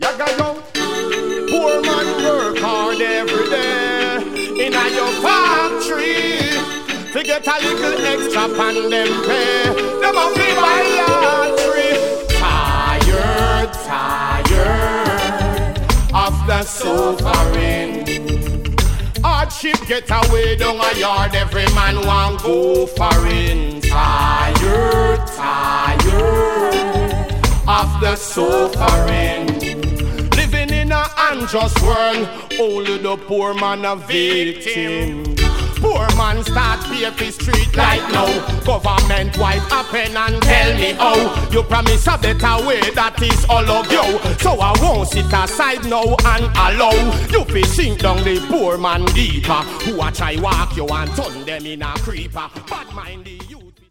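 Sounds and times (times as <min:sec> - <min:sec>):
reggae riddim: 0:00.0 - 0:53.8.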